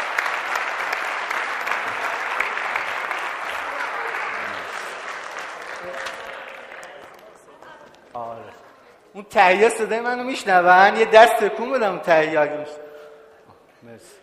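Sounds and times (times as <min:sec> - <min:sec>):
audience applause: 0:00.0 - 0:07.6
speech: 0:09.2 - 0:12.8, 0:14.0 - 0:14.2.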